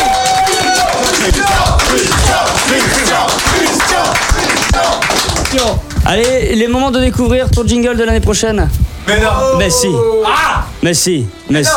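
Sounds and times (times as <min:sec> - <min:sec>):
people cheering and shouting: 0:00.0 - 0:05.4, 0:09.1 - 0:10.8
audience applauding: 0:00.0 - 0:06.4
speech: 0:05.7 - 0:11.7.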